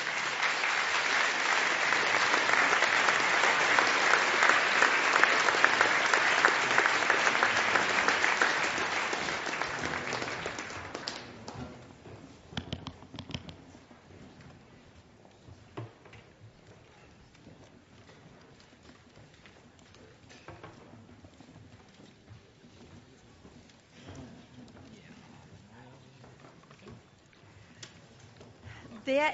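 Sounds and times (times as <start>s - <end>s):
audience applause: 0.0s - 11.6s.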